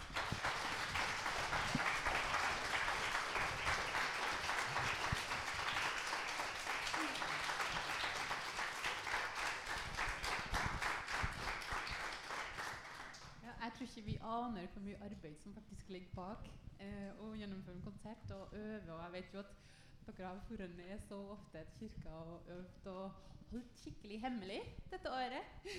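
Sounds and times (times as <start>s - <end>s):
audience applause after concert: 0.0s - 13.3s
speech: 14.0s - 25.7s.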